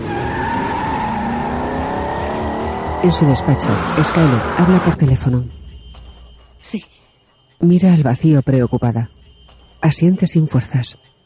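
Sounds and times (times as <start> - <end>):
car engine roaring accelerating hard: 0.0 - 5.1
tires squealing: 0.0 - 5.2
speech: 3.0 - 5.6, 6.6 - 7.0, 7.6 - 9.2, 9.8 - 11.1.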